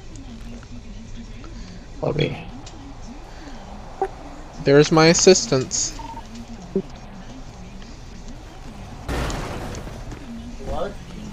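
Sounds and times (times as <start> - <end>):
speech: 2.0 - 2.5, 4.7 - 6.0
Corona car crashing into the fence: 2.7 - 11.3.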